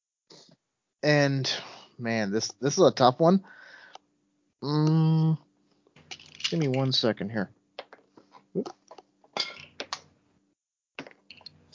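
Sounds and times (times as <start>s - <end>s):
speech: 1.0s - 3.6s, 4.6s - 5.4s, 6.5s - 7.6s, 8.5s - 8.8s
dice rolling: 6.0s - 6.8s, 11.0s - 11.5s.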